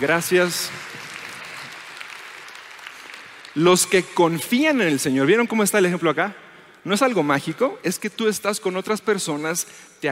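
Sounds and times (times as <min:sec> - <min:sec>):
speech: 0:00.0 - 0:00.9, 0:03.6 - 0:10.1
audience applause: 0:00.0 - 0:04.0.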